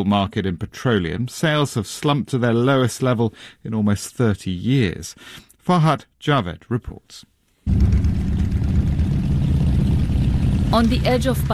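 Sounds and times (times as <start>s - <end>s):
speech: 0.0s - 8.0s, 10.7s - 11.5s
thousands of motorbike engines running: 7.7s - 11.5s.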